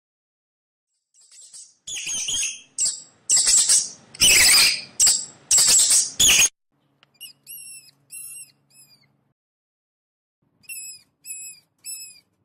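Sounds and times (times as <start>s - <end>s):
mouse squeaking: 1.2s - 6.5s, 7.1s - 9.1s, 10.6s - 12.4s.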